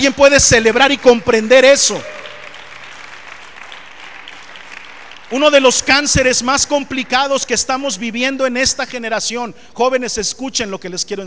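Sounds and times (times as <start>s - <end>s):
speech: 0.0s - 2.2s, 5.3s - 11.2s
audience applauding: 0.0s - 7.4s.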